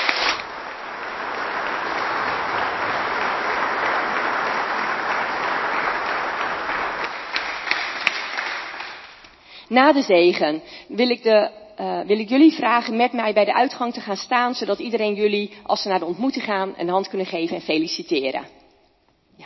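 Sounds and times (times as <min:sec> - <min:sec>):
crowd applauding: 0:00.0 - 0:09.4
speech: 0:09.7 - 0:18.6.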